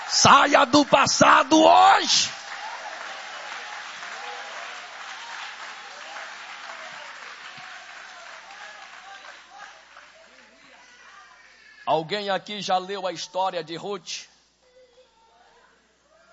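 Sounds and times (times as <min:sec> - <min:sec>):
audience applauding: 0:00.0 - 0:11.2
speech: 0:00.1 - 0:02.4, 0:11.9 - 0:14.3.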